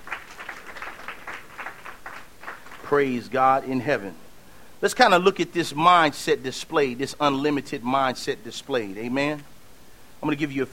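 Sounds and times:
church congregation clapping during a sermon: 0.0s - 3.2s
speech: 2.9s - 4.2s, 4.8s - 9.5s, 10.2s - 10.7s.

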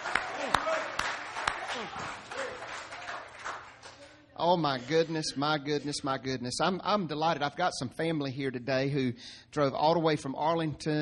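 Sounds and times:
crowd applauding: 0.0s - 4.2s
speech: 4.4s - 11.0s.

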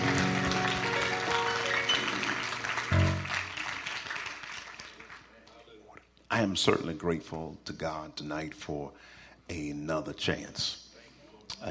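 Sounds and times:
audience clapping hands: 0.0s - 5.6s
speech: 6.4s - 10.8s.

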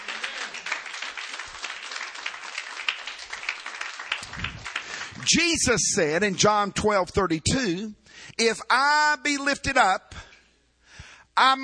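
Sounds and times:
crowd clapping: 0.0s - 5.8s
speech: 5.3s - 10.1s, 11.4s - 11.6s.

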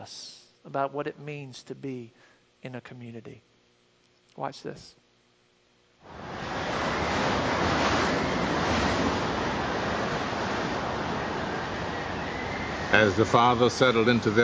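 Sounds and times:
speech: 0.0s - 3.5s, 4.4s - 5.0s, 6.0s - 6.4s, 12.9s - 14.4s
winter storm wind: 6.1s - 14.4s.

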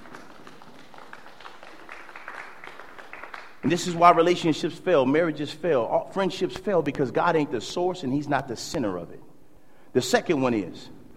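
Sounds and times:
crowd clapping: 0.0s - 4.3s
speech: 3.6s - 9.2s, 10.0s - 11.0s.

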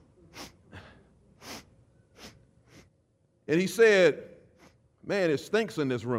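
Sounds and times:
voice imitating repeated sniffing: 0.3s - 3.0s
speech: 3.5s - 4.3s, 5.0s - 6.1s.

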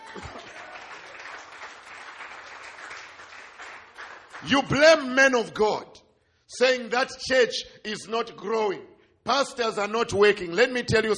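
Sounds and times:
audience clapping hands: 0.0s - 5.1s
speech: 0.1s - 0.4s, 4.4s - 5.9s, 6.5s - 11.1s.

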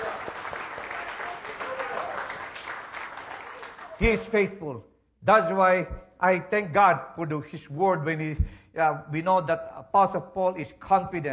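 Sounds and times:
audience clapping in praise: 0.0s - 4.4s
speech: 4.0s - 11.3s.

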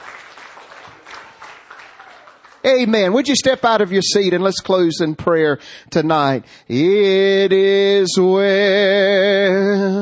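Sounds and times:
congregation applauding in church during an evening service: 0.0s - 3.9s
speech: 2.6s - 9.9s.

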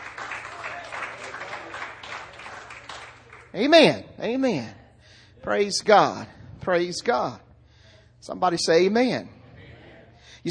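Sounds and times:
audience applause: 0.0s - 3.5s
speech: 3.6s - 4.8s, 5.4s - 7.5s, 8.2s - 9.4s.

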